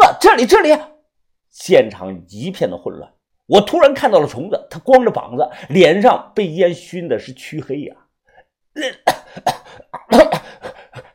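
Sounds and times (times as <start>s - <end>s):
speech: 0.4s - 0.9s, 1.6s - 8.0s, 8.8s - 10.7s
person coughing: 8.8s - 11.1s
throat clearing: 8.8s - 11.1s.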